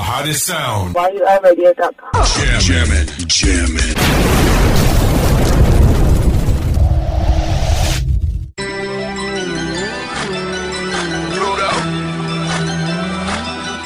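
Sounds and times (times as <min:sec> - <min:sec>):
speech: 0:00.2 - 0:04.8
rocket ignition blast: 0:04.0 - 0:08.2
music with steady tones: 0:08.6 - 0:13.8.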